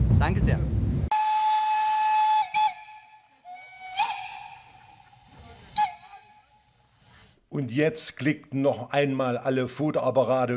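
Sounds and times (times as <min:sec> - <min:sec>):
speech: 0:00.2 - 0:00.8, 0:07.5 - 0:10.5
departing steam locomotive whistle: 0:01.1 - 0:05.0, 0:05.7 - 0:06.5.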